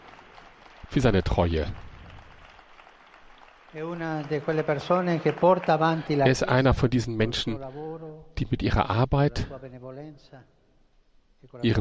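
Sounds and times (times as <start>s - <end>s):
audience applause: 0.0s - 6.7s
speech: 0.9s - 1.8s, 3.7s - 10.6s, 11.4s - 11.7s.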